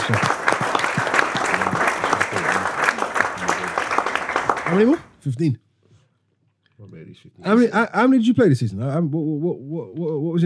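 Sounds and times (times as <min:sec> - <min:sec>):
crowd applauding: 0:00.0 - 0:05.0
speech: 0:00.1 - 0:00.3, 0:04.7 - 0:05.6, 0:07.1 - 0:10.4
murmuring voices: 0:01.0 - 0:04.7.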